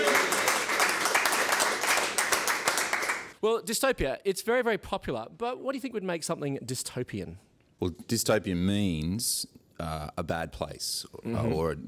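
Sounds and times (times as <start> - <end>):
audience applause: 0.0 - 3.3
speech: 3.4 - 11.8.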